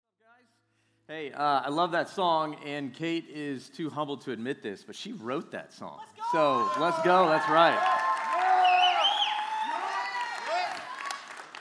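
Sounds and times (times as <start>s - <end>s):
speech: 1.1s - 8.0s
audience cheering and yelling: 6.2s - 11.5s.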